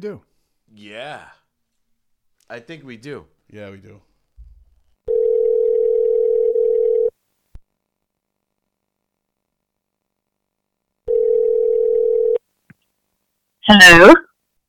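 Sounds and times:
speech: 0.0 - 1.4, 2.5 - 4.1, 13.7 - 14.3
telephone tones while placing a call: 5.1 - 7.2, 11.1 - 12.4.

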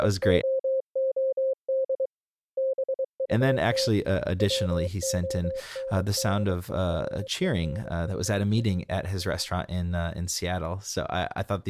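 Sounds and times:
speech: 0.0 - 0.5, 3.3 - 11.6
Morse code tones pitched to a song's key: 0.4 - 7.3.

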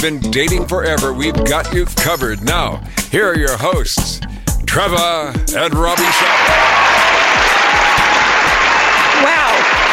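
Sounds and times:
speech: 0.0 - 7.4, 9.2 - 9.7
audience applause: 6.0 - 9.9.

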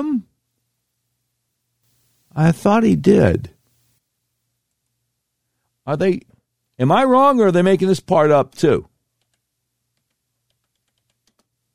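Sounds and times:
speech: 0.0 - 0.3, 2.4 - 3.5, 5.9 - 8.9
low steady hum: 0.0 - 7.6
typing on a computer keyboard: 9.2 - 11.5.

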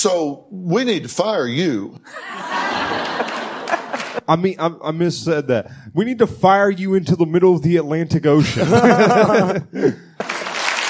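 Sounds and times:
speech: 0.0 - 3.4, 4.2 - 10.0
laughter: 2.1 - 4.3, 8.4 - 10.0
studio audience clapping: 2.7 - 4.3, 10.2 - 10.8.

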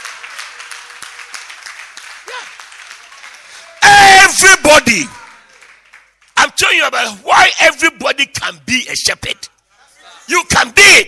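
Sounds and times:
audience clapping hands: 0.0 - 3.9, 4.8 - 6.8
speech: 4.3 - 5.2, 6.6 - 9.5, 10.3 - 11.0.

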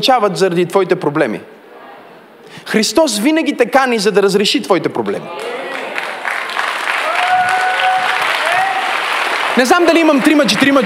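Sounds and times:
speech: 0.0 - 1.6, 2.6 - 5.8, 9.6 - 10.8
crowd cheering: 5.3 - 10.8
audience applause: 5.4 - 10.8.

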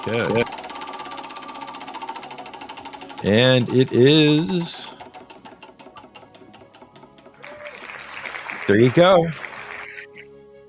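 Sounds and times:
speech: 0.0 - 0.7, 3.2 - 4.8, 8.7 - 9.4
prize wheel pointer ticking against pegs: 0.0 - 7.4.

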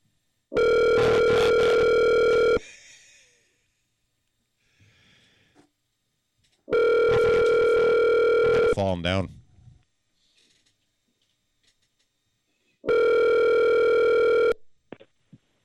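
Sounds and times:
telephone ringback tone while placing a call: 0.6 - 2.6, 6.7 - 8.8, 12.9 - 14.6
speech: 8.8 - 9.4.

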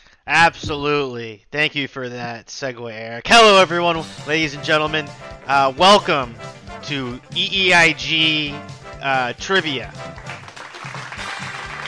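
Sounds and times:
speech: 0.3 - 10.3
audience applauding: 9.8 - 11.8.

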